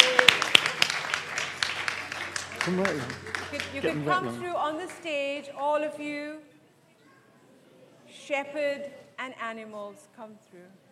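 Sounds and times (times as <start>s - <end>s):
audience clapping: 0.0s - 5.2s
speech: 2.6s - 6.5s, 8.3s - 10.8s.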